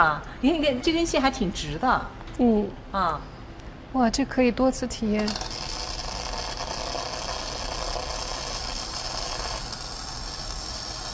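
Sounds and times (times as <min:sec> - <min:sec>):
speech: 0:00.0 - 0:03.3, 0:03.9 - 0:05.6
simulated welding sound: 0:05.2 - 0:11.1.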